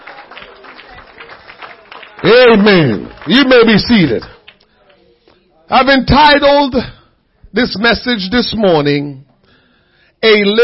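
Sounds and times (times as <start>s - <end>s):
audience clapping hands: 0.0s - 5.0s
speech: 2.2s - 4.3s, 5.7s - 9.3s, 10.2s - 10.6s.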